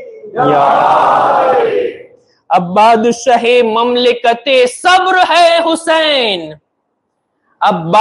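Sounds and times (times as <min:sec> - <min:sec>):
crowd at a religious gathering shouting a slogan: 0:00.3 - 0:02.1
speech: 0:02.5 - 0:06.6, 0:07.6 - 0:07.9.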